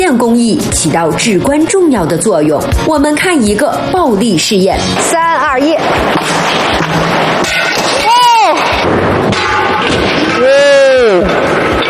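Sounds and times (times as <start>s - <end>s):
speech: 0.1s - 7.9s
window glass falling and shattering: 4.9s - 11.8s.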